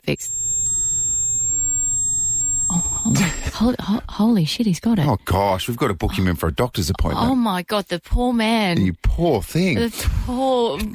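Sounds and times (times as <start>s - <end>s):
high-pitched ringing in the ears: 0.0s - 3.8s
speech: 3.6s - 10.9s.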